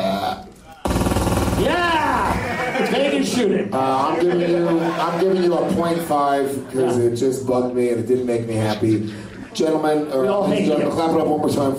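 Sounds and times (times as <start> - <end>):
voice imitating a Tommy gun firing: 0.8 - 2.6
laughter: 1.8 - 7.5, 8.5 - 11.1
speech: 3.4 - 11.7.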